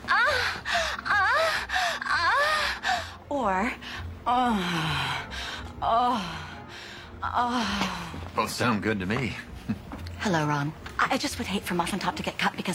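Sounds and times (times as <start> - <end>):
woman moaning in breathy vocal bursts: 0.0 - 8.1
speech: 3.4 - 5.2, 5.8 - 6.4, 7.2 - 12.7.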